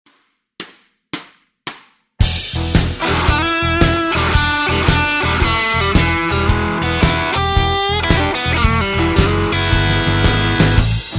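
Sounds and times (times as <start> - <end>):
roadhouse guitar licks: 2.2 - 11.0.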